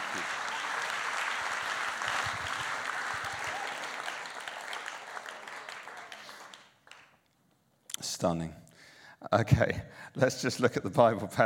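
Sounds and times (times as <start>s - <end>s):
audience applause: 0.0s - 7.1s
speech: 8.0s - 8.6s, 9.2s - 11.4s.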